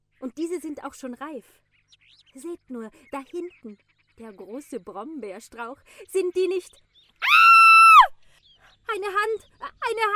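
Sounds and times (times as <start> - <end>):
speech: 0.4 - 7.6, 8.9 - 10.1
bloodcurdling scream in a forest: 7.2 - 8.1.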